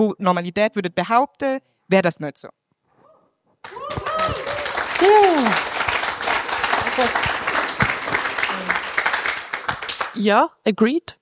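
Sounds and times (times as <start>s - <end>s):
speech: 0.0s - 2.6s, 5.0s - 5.8s, 7.0s - 7.3s, 10.2s - 11.2s
crowd applauding: 3.6s - 10.2s
voices calling out and cheering: 3.6s - 10.2s.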